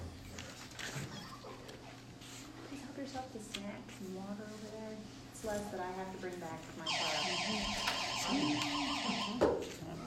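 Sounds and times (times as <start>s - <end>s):
speech: 3.1s - 10.0s
Active 911 emergency alert warbling electronic beep: 6.9s - 9.4s.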